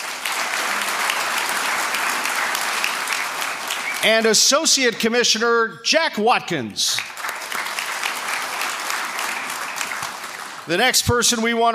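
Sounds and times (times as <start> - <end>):
audience applauding a league commissioner in St. Louis: 0.0 - 4.7, 6.9 - 11.0
speech: 4.0 - 7.2, 10.7 - 11.7.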